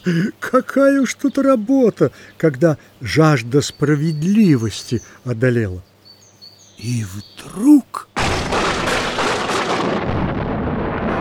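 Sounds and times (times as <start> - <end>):
speech: 0.0 - 5.9, 6.8 - 8.1
loud rumbling thunderclap: 8.2 - 11.2.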